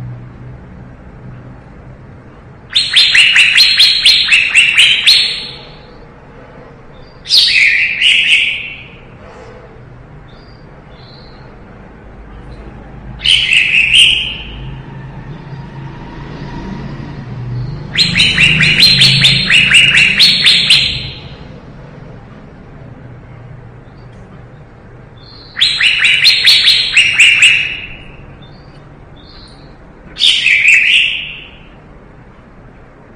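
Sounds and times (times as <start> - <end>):
leafbird singing: 2.7 - 6.1, 6.9 - 9.2, 10.2 - 11.6, 12.4 - 14.8, 17.5 - 21.6, 23.7 - 31.8.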